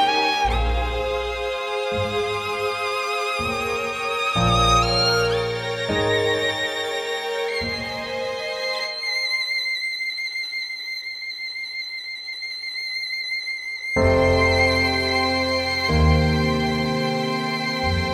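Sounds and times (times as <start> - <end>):
piano: 0.0 - 9.3, 14.0 - 18.1.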